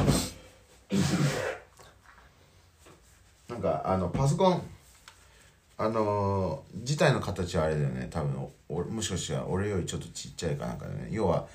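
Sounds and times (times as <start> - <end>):
man clearing his throat to bring up phlegm: 0.0 - 1.7
speech: 3.6 - 4.8, 5.8 - 11.5.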